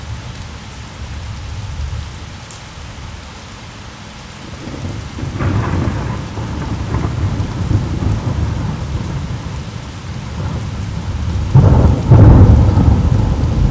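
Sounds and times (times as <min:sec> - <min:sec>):
rain: 0:00.0 - 0:13.7
thunder rumble: 0:04.5 - 0:13.7.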